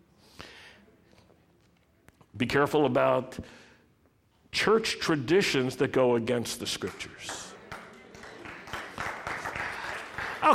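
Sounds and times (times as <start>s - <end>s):
speech: 2.4s - 3.6s, 4.6s - 7.5s
audience clapping: 6.6s - 10.5s.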